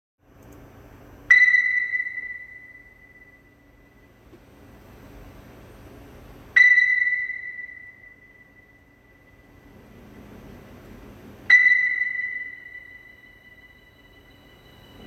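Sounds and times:
ping: 1.3 - 4.1, 6.6 - 9.6, 11.5 - 15.0.

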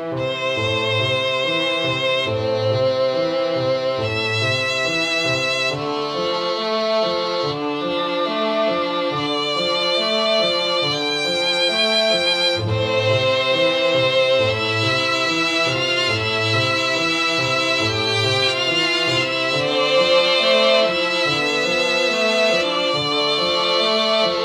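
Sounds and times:
Italian fiddles playing: 0.1 - 24.4.

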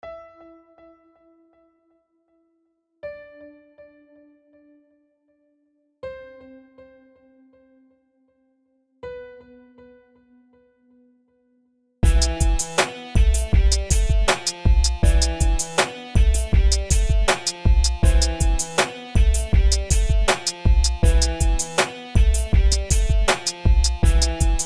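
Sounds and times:
music beat: 12.0 - 24.6.

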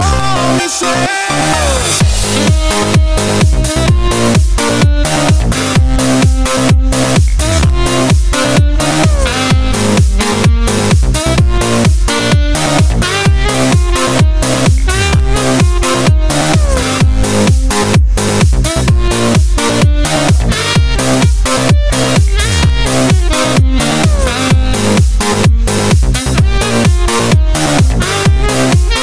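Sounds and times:
saxophone: 0.0 - 29.0.

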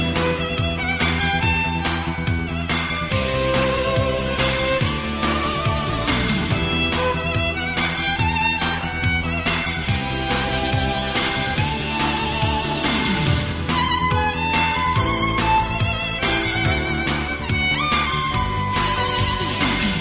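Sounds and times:
violin medley: 0.0 - 19.9.

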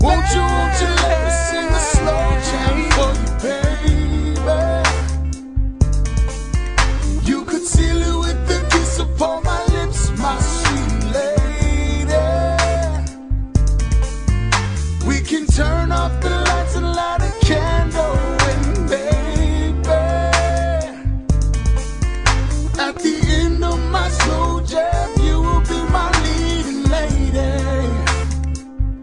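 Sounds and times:
slow jam music: 0.0 - 29.0.

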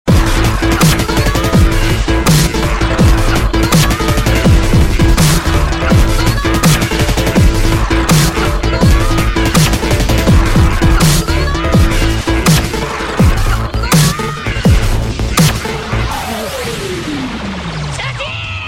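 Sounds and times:
touching music: 0.1 - 17.8.

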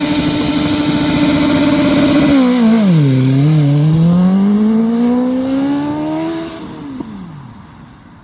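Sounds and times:
BMW S1000RR motorcycle launching: 0.0 - 6.8.

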